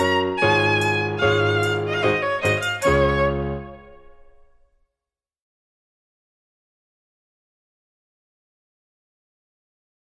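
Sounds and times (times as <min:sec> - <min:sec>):
old English dance music: 0:00.0 - 0:03.9.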